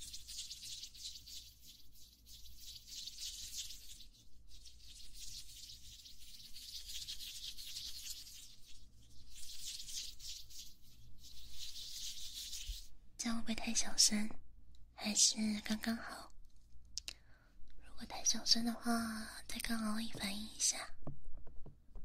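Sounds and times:
hands rubbing together: 0.0 - 12.9
speech: 13.5 - 14.4, 15.0 - 16.3, 18.3 - 21.1.

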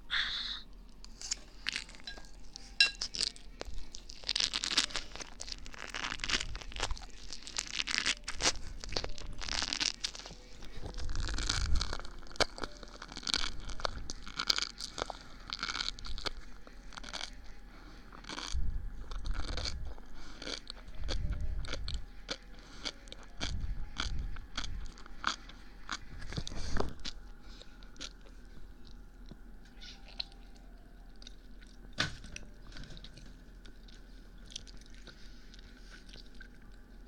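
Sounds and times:
crunchy biting and chewing of a big mouthful of food: 0.7 - 37.0.

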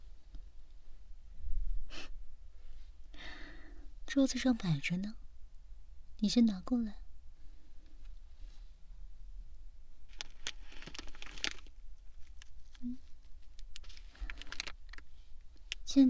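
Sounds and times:
speech: 4.2 - 5.2, 6.2 - 7.0
packaging bag torn open: 10.1 - 12.9, 13.8 - 15.0.

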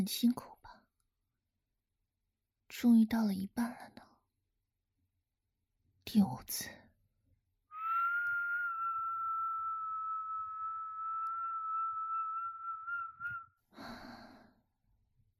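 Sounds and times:
speech: 0.0 - 0.5, 2.7 - 4.1, 6.1 - 6.8
long whistled note: 7.8 - 13.5.

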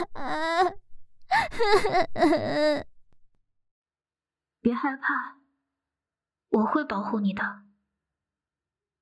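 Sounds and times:
frightened child crying: 0.0 - 2.9
speech: 1.6 - 2.9, 4.8 - 5.4, 6.5 - 7.6.

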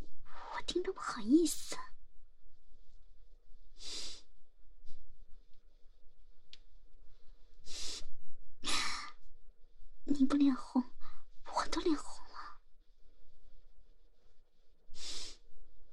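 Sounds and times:
faint steady hum: 0.0 - 15.9
speech: 0.6 - 1.9
person breathing heavily alone at home: 3.8 - 4.3, 7.6 - 9.2, 14.9 - 15.4.

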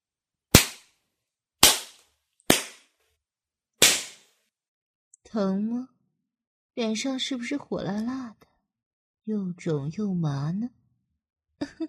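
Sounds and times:
hand slapping one's own face hard: 0.5 - 1.0, 1.6 - 2.9, 3.8 - 4.3
speech: 5.3 - 6.0, 6.8 - 8.5, 9.3 - 10.8, 11.6 - 11.8.

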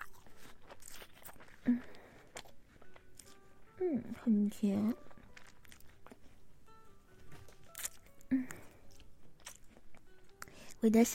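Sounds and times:
crunchy bite into a sweet food: 0.0 - 2.6, 7.6 - 9.8
person chewing a sweet food: 0.0 - 10.8
speech: 3.8 - 5.1, 10.8 - 11.1.

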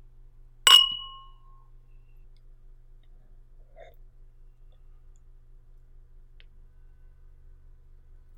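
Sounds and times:
glasses clinking in a toast: 0.7 - 1.4.

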